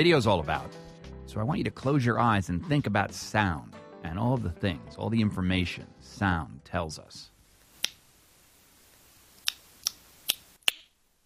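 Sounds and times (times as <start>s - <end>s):
speech: 0.0s - 7.3s
tongue clicks for echolocation made by blind man: 7.8s - 8.0s, 9.4s - 11.0s.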